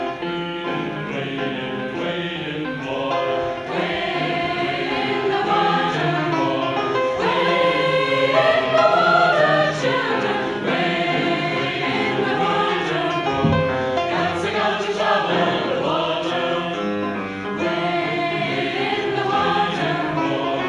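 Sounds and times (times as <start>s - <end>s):
gospel choir singing at a school concert: 0.1s - 20.6s.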